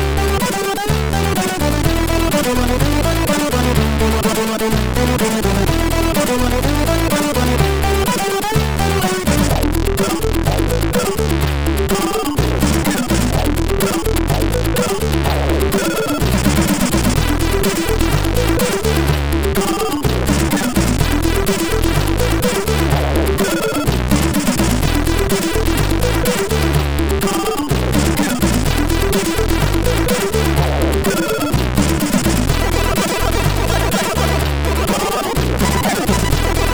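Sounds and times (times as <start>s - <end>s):
funky chiptune music on a MOS 6581R3 SID chip: 0.0s - 36.7s.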